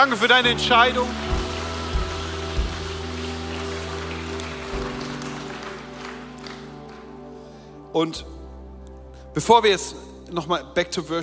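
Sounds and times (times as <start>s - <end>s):
speech: 0.0s - 1.3s, 7.9s - 8.3s, 9.4s - 11.2s
audience applause: 0.0s - 7.3s.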